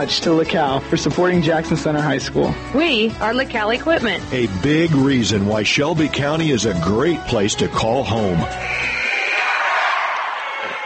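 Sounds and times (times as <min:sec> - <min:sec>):
speech: 0:00.0 - 0:09.0
high school basketball crowd cheering for Ansonia: 0:08.6 - 0:10.8.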